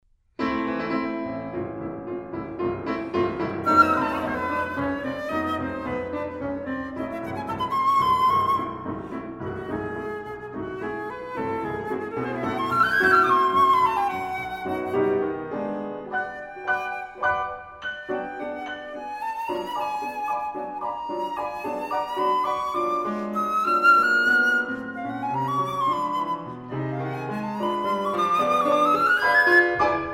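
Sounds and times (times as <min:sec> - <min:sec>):
flute and piano piece: 0:00.4 - 0:30.1.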